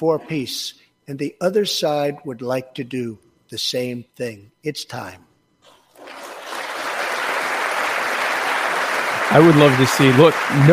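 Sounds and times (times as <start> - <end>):
speech: 0.0 - 5.3, 9.3 - 10.7
applause: 6.0 - 10.7.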